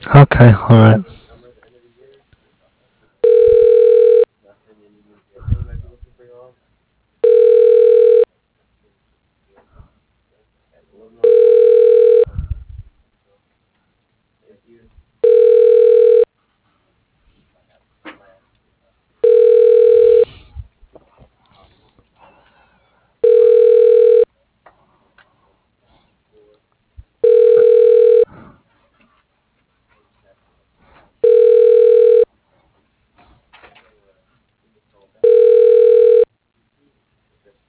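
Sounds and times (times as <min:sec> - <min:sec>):
speech: 0:00.1 - 0:01.2
unanswered telephone call ringback tones: 0:03.2 - 0:04.3, 0:07.2 - 0:08.3, 0:11.2 - 0:12.3, 0:15.2 - 0:16.3, 0:19.2 - 0:20.3, 0:23.2 - 0:24.3, 0:27.2 - 0:28.3, 0:31.2 - 0:32.3, 0:35.2 - 0:36.3.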